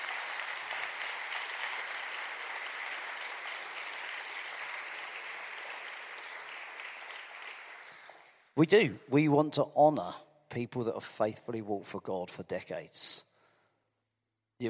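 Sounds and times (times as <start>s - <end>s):
audience applause: 0.0s - 8.4s
speech: 8.6s - 13.3s.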